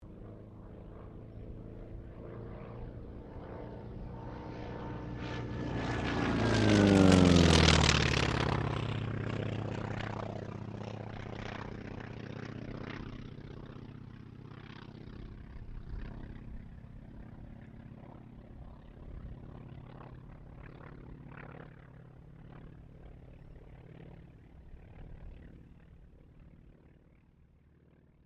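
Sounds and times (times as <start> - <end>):
T-28D Trojan aircraft passing: 0.0 - 28.2.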